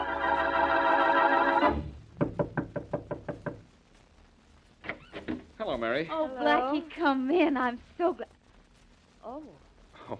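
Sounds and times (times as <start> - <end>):
sustained music: 0.0 - 2.0
knocking on a door: 1.7 - 3.7
speech: 5.8 - 8.3, 9.4 - 10.1.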